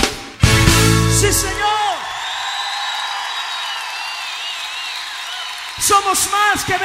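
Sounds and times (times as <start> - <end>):
speech: 1.2 - 1.8, 5.9 - 6.8
church congregation clapping: 1.6 - 6.8.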